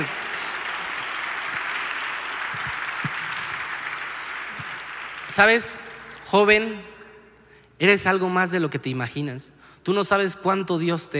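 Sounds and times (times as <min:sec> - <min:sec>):
crowd applause: 0:00.0 - 0:06.2
speech: 0:05.4 - 0:06.9, 0:07.8 - 0:11.1.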